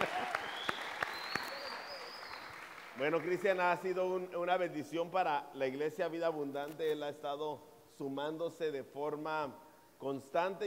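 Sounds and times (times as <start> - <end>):
audience applause: 0.0 - 3.5
thin high whistle-like tone: 0.4 - 2.6
speech: 3.0 - 10.6.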